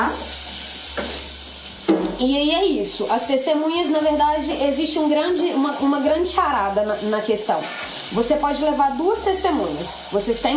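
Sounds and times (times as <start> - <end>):
onions sautéing in a frying pan: 0.0 - 10.5
speech: 2.2 - 10.5
utensil scraping: 7.5 - 8.1.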